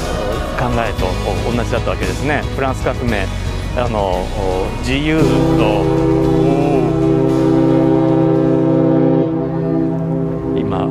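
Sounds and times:
speech: 0.6s - 6.4s
ship bound for Goto sounding its whistle: 5.2s - 10.8s.

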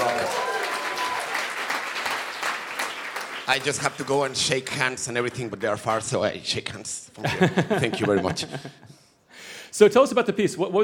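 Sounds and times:
brief tonal voice or cheer: 0.0s - 1.4s
audience applause: 0.0s - 5.9s
speech: 3.5s - 8.9s, 9.7s - 10.8s
laughter: 7.2s - 9.1s.

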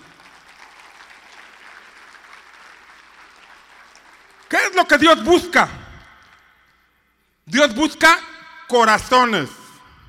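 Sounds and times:
crowd clapping: 0.0s - 5.1s
speech: 4.6s - 5.8s, 7.6s - 9.6s.

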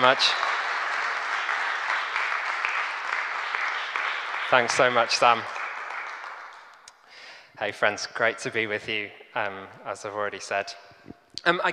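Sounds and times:
speech: 0.0s - 0.5s, 4.5s - 5.6s, 7.6s - 11.7s
audience applause at Preston Minster welcoming a speaker: 0.0s - 6.8s.

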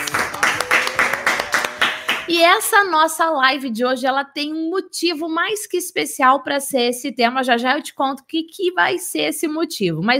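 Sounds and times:
applause: 0.0s - 2.7s
speech: 2.3s - 10.1s.

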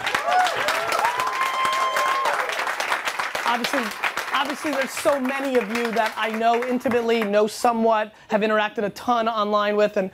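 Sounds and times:
crowd clapping: 0.0s - 7.4s
speech: 3.5s - 10.1s.

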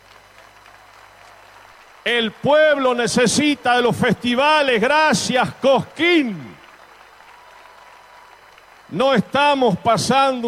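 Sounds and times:
audience applause: 0.0s - 10.4s
speech: 2.0s - 6.5s, 8.9s - 10.4s.

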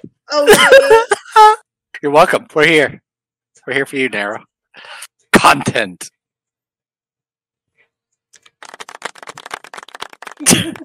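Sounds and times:
speech: 0.3s - 3.0s, 3.6s - 6.2s, 10.4s - 10.8s
laughter: 0.5s - 1.6s
golf clap, soft slow hand clapping: 8.4s - 10.8s.

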